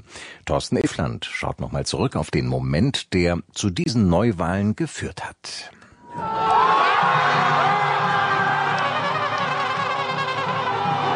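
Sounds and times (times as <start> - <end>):
speech: 0.5 - 6.5
crowd cheering in jubilation: 6.0 - 11.1.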